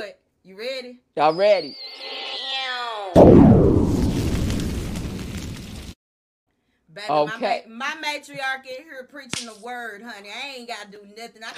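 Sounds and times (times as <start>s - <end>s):
speech: 0.0s - 2.2s, 7.0s - 11.5s
falling whistling tone: 1.3s - 4.5s
bomb blast: 3.2s - 6.0s.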